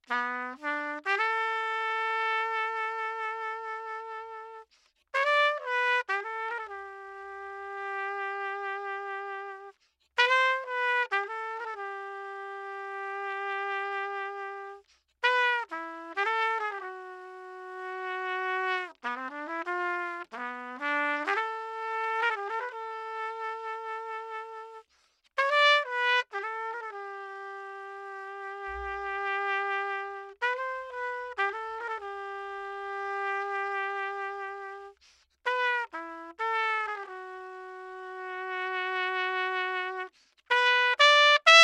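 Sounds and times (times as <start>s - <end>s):
trumpet: 0.0s - 41.6s.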